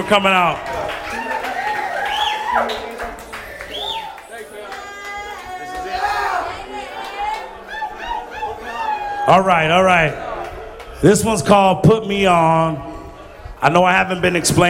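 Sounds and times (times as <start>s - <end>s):
speech: 0.0s - 1.2s, 2.5s - 3.2s, 9.3s - 10.3s, 11.0s - 12.9s, 13.6s - 14.6s
audience applause: 0.0s - 9.2s
audience cheering: 0.0s - 11.5s.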